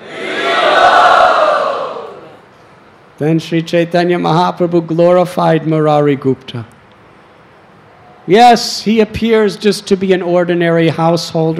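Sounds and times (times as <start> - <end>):
devotees cheering with joy: 0.0 - 2.4
speech: 3.2 - 6.8, 8.3 - 11.5.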